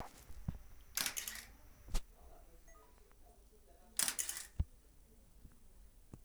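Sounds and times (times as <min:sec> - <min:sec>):
Hasselblad camera shutter release: 0:00.0 - 0:02.0, 0:04.0 - 0:04.6.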